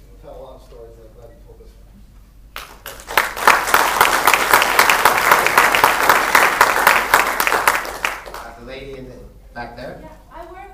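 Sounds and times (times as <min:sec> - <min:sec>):
audience applause: 0:02.6 - 0:08.6.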